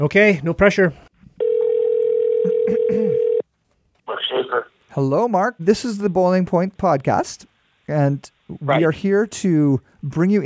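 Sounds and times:
speech: 0.0 - 1.0, 2.9 - 3.2, 4.5 - 10.4
telephone call ringing out: 1.4 - 3.4.

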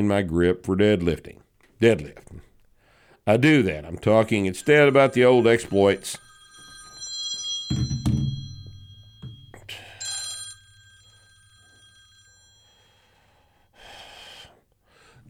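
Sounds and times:
speech: 0.0 - 2.5, 3.2 - 6.2, 7.7 - 8.2
telephone ringing: 4.0 - 13.2.

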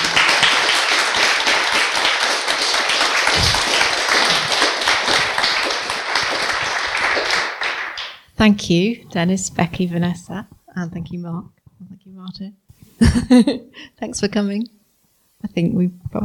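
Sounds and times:
crowd applauding: 0.0 - 8.3
speech: 8.4 - 11.6, 12.2 - 14.8, 15.4 - 16.2.

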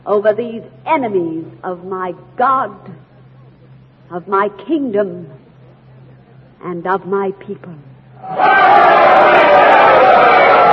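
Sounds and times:
speech: 0.0 - 3.1, 4.1 - 5.4, 6.6 - 10.7
crowd cheering: 8.2 - 10.7.

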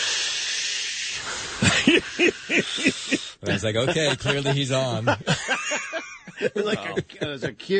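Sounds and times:
oxygen tank hiss: 0.0 - 3.4
breathy puffs: 0.0 - 3.5
laughter: 1.6 - 7.7
speech: 1.9 - 7.7.

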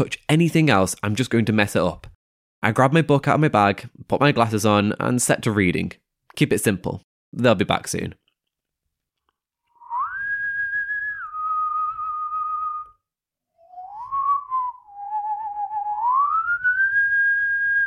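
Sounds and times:
speech: 0.0 - 8.2
person whistling a slow wavering tune: 9.8 - 13.0, 13.6 - 17.8.

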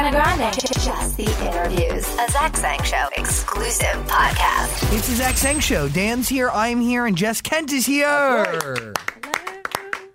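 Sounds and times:
speech: 0.1 - 9.2
hand clapping: 8.2 - 10.1.

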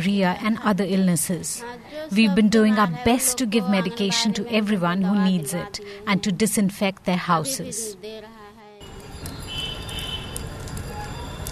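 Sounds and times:
speech: 0.0 - 8.4
rain falling in Bihar: 8.9 - 11.5.

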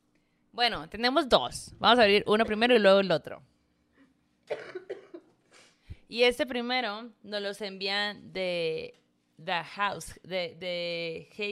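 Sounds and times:
speech: 0.6 - 3.5, 6.1 - 11.5
coughing from a sick person with a sore throat: 4.5 - 5.8.

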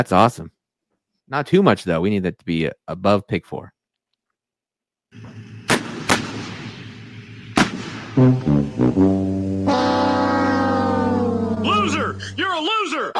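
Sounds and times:
speech: 0.0 - 0.6, 1.3 - 3.8, 5.1 - 5.6, 8.2 - 9.9
tank cannon firing sound effect: 5.2 - 8.6
blaring horn-like tones: 8.2 - 12.5.

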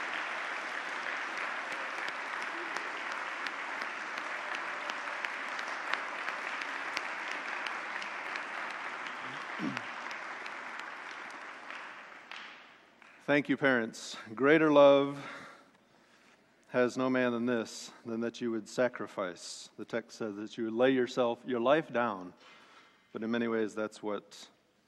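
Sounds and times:
audience applause: 0.0 - 13.2
speech: 13.3 - 15.4, 16.7 - 24.6.

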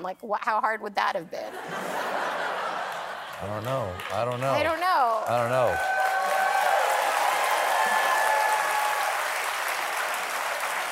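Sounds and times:
speech: 0.0 - 2.4, 3.4 - 6.1
laughter: 1.5 - 4.6
live audience applauding: 2.6 - 10.8.

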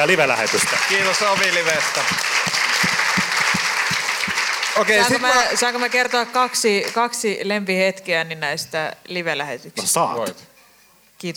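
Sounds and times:
speech: 0.0 - 3.0, 4.8 - 10.5, 11.2 - 11.3
crowd applauding: 0.0 - 7.0.

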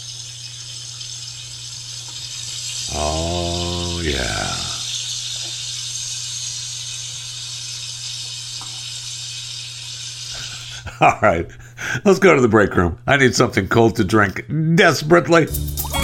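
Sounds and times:
bacon sizzling in a frying pan: 0.0 - 2.9, 4.8 - 10.6
speech: 2.9 - 4.6, 11.0 - 15.9.

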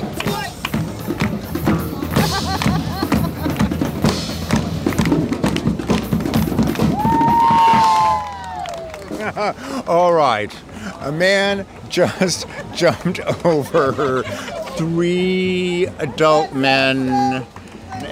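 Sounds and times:
large crowd chattering around a street performer: 0.0 - 18.0
laughter: 1.8 - 4.1, 9.0 - 9.9, 12.0 - 16.2
sustained rising whoop or whistle: 6.9 - 9.0
speech: 9.4 - 17.6.

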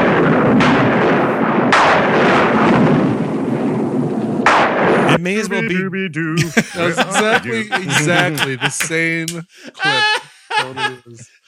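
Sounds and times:
stock Hollywood lightning and thunder sound effect: 0.0 - 5.2
laughter: 5.1 - 11.4
speech: 5.2 - 11.4.

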